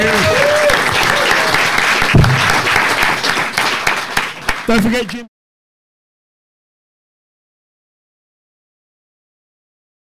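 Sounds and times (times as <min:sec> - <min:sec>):
live show audience in Birmingham applauding a panel: 0:00.0 - 0:05.3
speech: 0:04.7 - 0:05.4.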